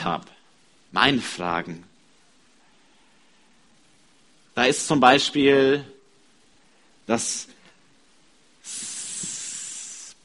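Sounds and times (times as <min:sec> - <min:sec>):
speech: 0:00.0 - 0:01.9, 0:04.6 - 0:05.9, 0:07.1 - 0:07.6
snake hissing: 0:08.6 - 0:10.2.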